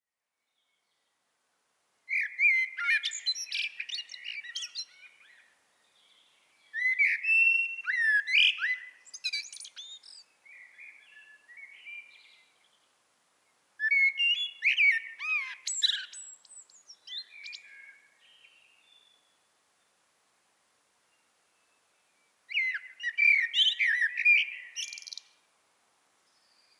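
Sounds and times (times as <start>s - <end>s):
common blackbird song of whistled warbles and twitters: 2.1s - 12.6s, 13.8s - 19.4s, 22.5s - 25.4s, 26.3s - 26.7s.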